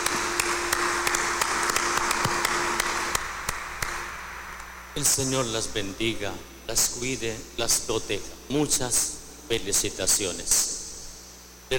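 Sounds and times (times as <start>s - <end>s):
applause: 0.0s - 4.1s
speech: 5.0s - 10.8s.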